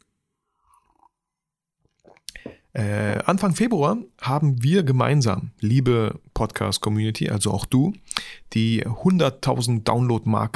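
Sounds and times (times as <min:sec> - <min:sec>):
person sipping tea from a cup: 0:00.4 - 0:01.2, 0:01.8 - 0:02.8, 0:08.0 - 0:09.1
speech: 0:02.8 - 0:10.5.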